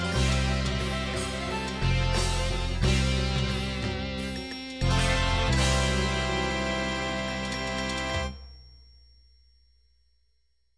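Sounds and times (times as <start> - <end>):
Latin Cajun MIDI music: 0.0 - 8.4.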